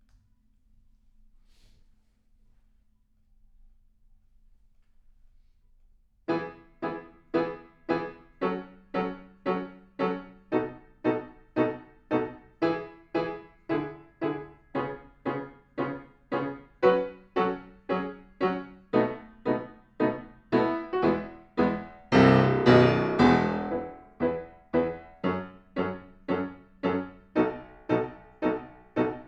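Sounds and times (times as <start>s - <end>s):
piano: 6.3s - 29.2s.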